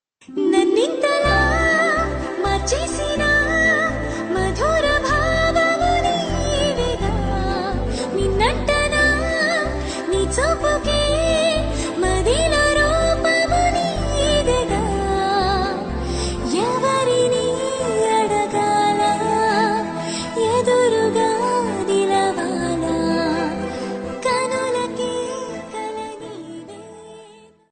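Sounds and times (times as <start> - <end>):
serial song: 0.3 - 27.0.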